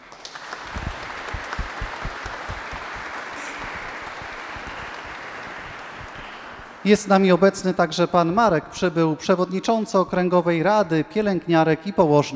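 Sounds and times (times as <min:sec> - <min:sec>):
applause: 0:00.0 - 0:06.9
speech: 0:06.8 - 0:12.3.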